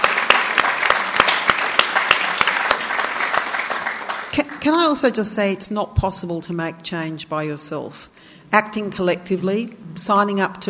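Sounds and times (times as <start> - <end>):
audience clapping: 0.0 - 4.8
speech: 4.4 - 10.6.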